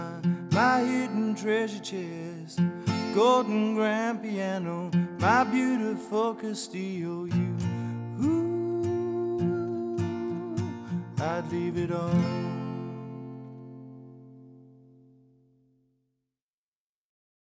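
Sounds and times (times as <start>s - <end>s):
person singing: 0.0s - 13.2s
solo acoustic guitar: 0.0s - 15.9s.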